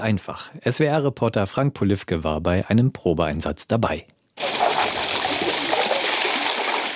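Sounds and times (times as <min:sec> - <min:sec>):
speech: 0:00.0 - 0:04.5
crushed ice poured into cold water: 0:04.4 - 0:06.9.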